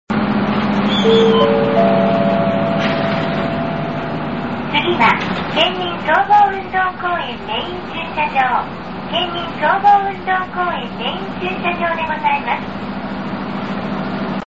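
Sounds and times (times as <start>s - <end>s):
main parking lot ambience: 0.1s - 14.4s.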